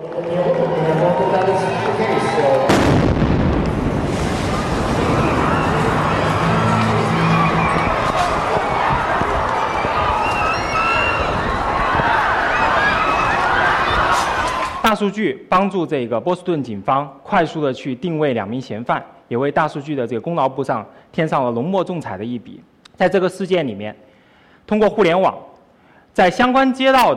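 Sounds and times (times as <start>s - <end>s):
marathon crowd: 0.0s - 15.0s
bomb explosion at a marathon: 2.6s - 10.5s
speech: 15.0s - 24.1s, 24.7s - 25.5s, 26.2s - 27.1s.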